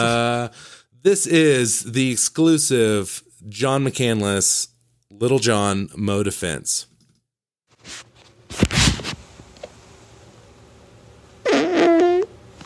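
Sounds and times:
speech: 0:00.0 - 0:06.9
fart: 0:11.4 - 0:12.3.

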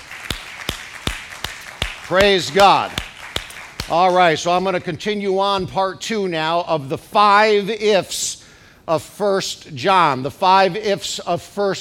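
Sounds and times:
audience clapping: 0:00.0 - 0:04.4
speech: 0:02.1 - 0:03.0, 0:03.9 - 0:11.8.

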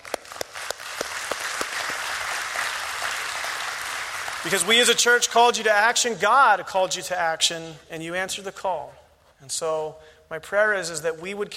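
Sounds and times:
audience applause: 0:00.0 - 0:04.8
speech: 0:04.4 - 0:11.5.

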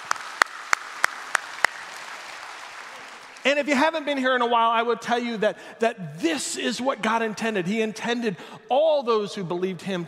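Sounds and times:
audience applause: 0:00.0 - 0:03.6
speech: 0:03.4 - 0:10.0.

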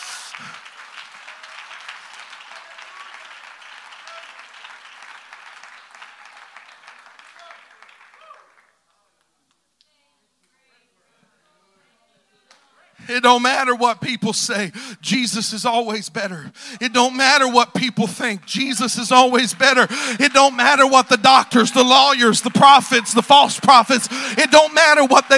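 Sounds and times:
audience clapping hands: 0:00.0 - 0:09.4, 0:16.9 - 0:25.3
speech: 0:13.1 - 0:25.3.

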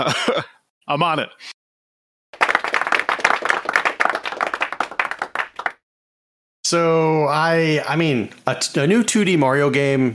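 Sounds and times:
speech: 0:00.0 - 0:01.5, 0:06.7 - 0:10.1
applause sound effect: 0:02.4 - 0:05.8.

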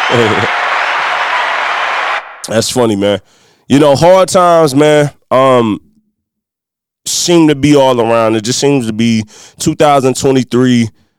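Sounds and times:
audience applause: 0:00.0 - 0:02.8
speech: 0:00.1 - 0:00.6, 0:02.5 - 0:05.8, 0:07.1 - 0:11.0.

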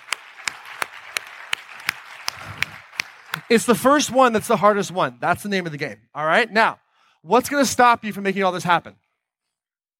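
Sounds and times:
audience applause: 0:00.0 - 0:03.7
speech: 0:03.5 - 0:09.0.

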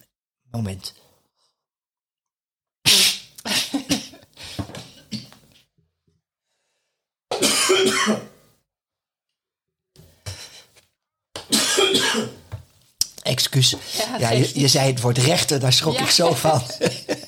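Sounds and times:
speech: 0:00.5 - 0:01.1, 0:08.0 - 0:08.3, 0:13.4 - 0:17.1
coughing after choking on a drink: 0:02.9 - 0:05.4, 0:07.3 - 0:08.5, 0:11.4 - 0:12.5
laughter: 0:14.0 - 0:17.2.

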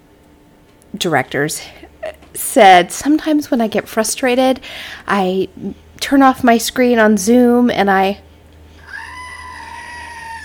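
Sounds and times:
speech: 0:00.9 - 0:08.3
screaming goat novelty toy button: 0:08.8 - 0:10.4.

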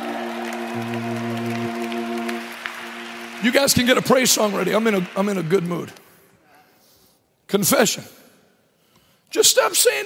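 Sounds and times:
sustained organ-like chord droning: 0:00.0 - 0:05.3
audience clapping: 0:00.0 - 0:06.4
speech: 0:00.7 - 0:01.4, 0:03.4 - 0:06.0, 0:07.5 - 0:08.2, 0:09.3 - 0:10.0.

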